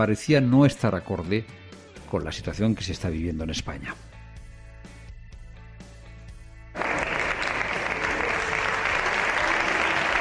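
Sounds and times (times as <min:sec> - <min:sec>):
speech: 0:00.0 - 0:04.1
applause in a parliamentary chamber: 0:06.7 - 0:10.2.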